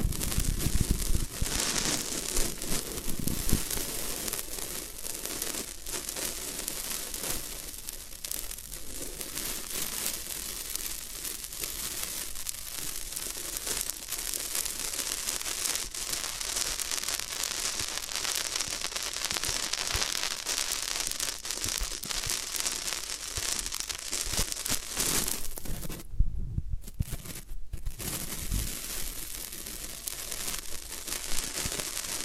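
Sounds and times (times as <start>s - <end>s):
floral foam sounds: 0.0s - 26.1s, 26.8s - 32.2s.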